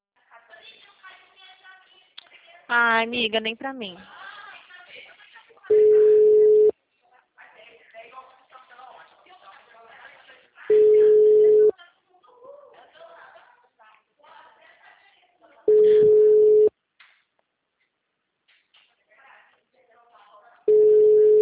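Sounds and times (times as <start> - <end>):
speech: 2.7 - 4.2
telephone ringback tone: 5.7 - 6.7, 10.7 - 11.7, 15.7 - 16.7, 20.7 - 21.3.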